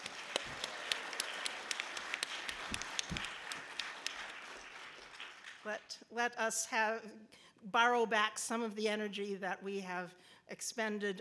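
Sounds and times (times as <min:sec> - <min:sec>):
audience applause: 0:00.0 - 0:05.8
speech: 0:05.7 - 0:11.1.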